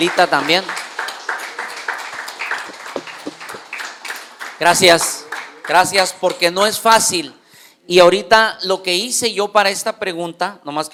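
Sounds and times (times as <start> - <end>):
speech: 0.0 - 0.8, 4.6 - 10.9
small audience applauding: 0.0 - 6.5.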